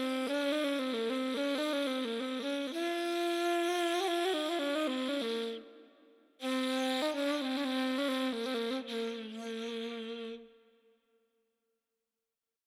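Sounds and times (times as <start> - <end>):
ney playing radif piece in Dastgah Mahur: 0.0 - 5.8, 6.4 - 10.4.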